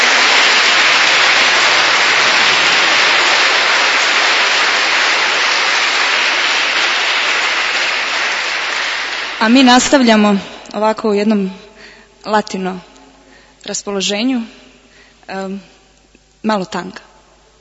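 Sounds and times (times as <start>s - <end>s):
audience applause at a concert for the arranger: 0.0s - 10.0s
speech: 9.4s - 11.6s, 12.2s - 12.9s, 13.6s - 14.6s, 15.3s - 15.7s, 16.4s - 17.1s.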